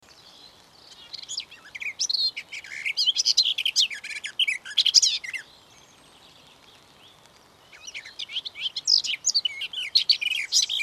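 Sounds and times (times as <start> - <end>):
garden warbler song: 0.0 - 10.8.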